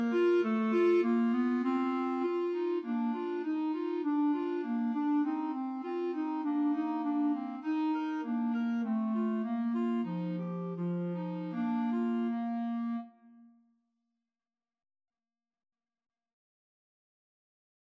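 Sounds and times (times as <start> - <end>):
clarinet melody: 0.0 - 13.4.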